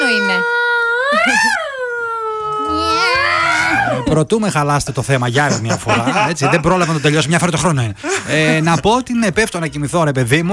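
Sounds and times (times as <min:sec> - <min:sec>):
human voice imitating cats yowling at night: 0:00.0 - 0:04.2
speech: 0:01.2 - 0:01.6, 0:04.1 - 0:10.5
laughter: 0:05.3 - 0:09.0.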